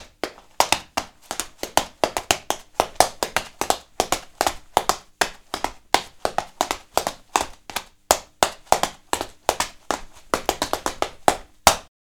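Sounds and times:
tap dancing: 0:00.0 - 0:11.9.

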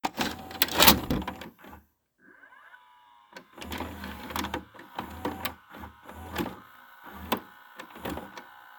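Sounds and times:
VCR starting up: 0:00.1 - 0:08.7.

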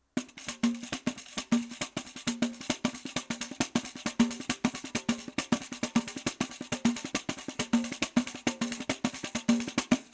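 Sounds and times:
pandeiro: 0:00.2 - 0:10.1.

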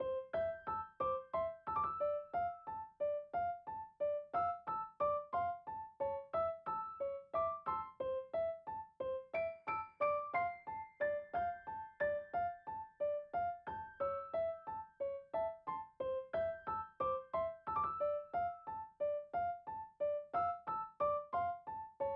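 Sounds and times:
piano loop: 0:00.0 - 0:22.1.

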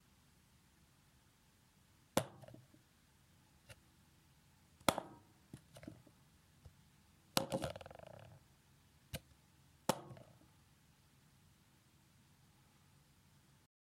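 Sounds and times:
plastic cup on wooden table: 0:02.2 - 0:02.8, 0:07.3 - 0:08.4, 0:09.9 - 0:10.5.

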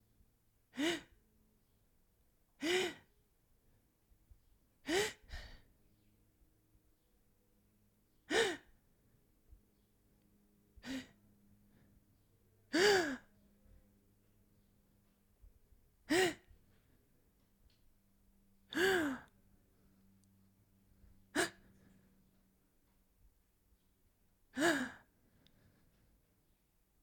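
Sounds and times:
woman gasping: 0:00.8 - 0:01.1, 0:02.6 - 0:03.1, 0:04.9 - 0:05.6, 0:08.3 - 0:08.7, 0:16.1 - 0:16.5, 0:18.7 - 0:19.3, 0:21.4 - 0:21.9, 0:24.6 - 0:25.7.

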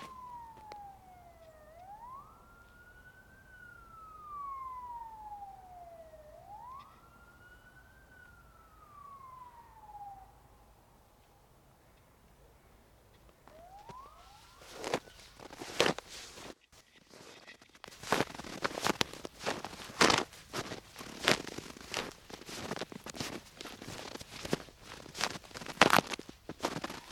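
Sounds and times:
footsteps in snow: 0:00.0 - 0:00.7, 0:13.4 - 0:27.1.

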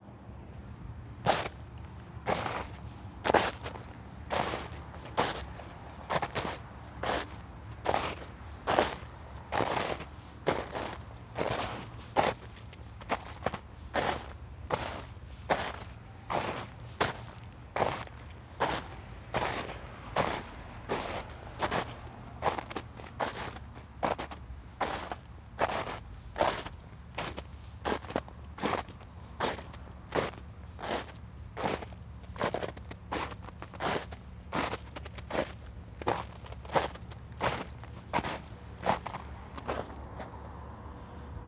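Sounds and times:
footsteps in snow: 0:01.2 - 0:40.3.

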